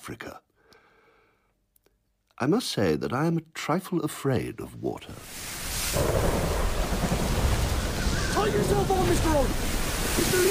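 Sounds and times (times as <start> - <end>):
speech: 0.0 - 0.5, 2.4 - 6.5, 8.4 - 10.4
thunderstorm with rain at sea: 5.4 - 10.4.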